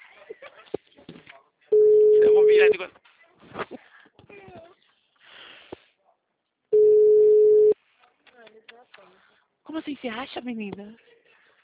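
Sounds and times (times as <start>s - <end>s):
telephone ringback tone of an unanswered call: 1.8s - 2.7s, 6.8s - 7.8s
speech: 2.6s - 3.0s, 10.0s - 11.1s.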